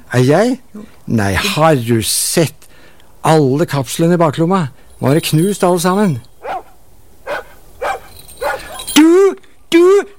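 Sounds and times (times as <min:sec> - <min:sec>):
speech: 0:00.1 - 0:02.6, 0:03.2 - 0:06.3
dog barking: 0:06.4 - 0:09.0.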